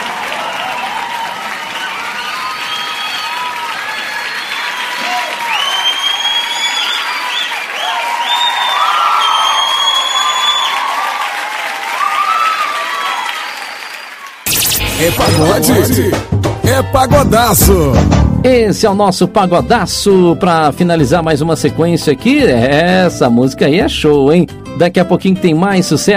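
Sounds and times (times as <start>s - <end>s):
audience applause: 0.0s - 14.5s
speech: 15.0s - 26.1s.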